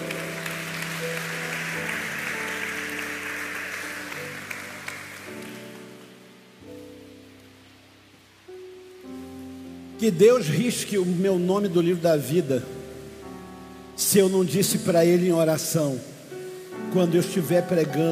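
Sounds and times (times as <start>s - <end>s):
audience applause: 0.0s - 6.2s
speech: 10.0s - 12.8s, 14.1s - 16.1s, 16.9s - 18.0s.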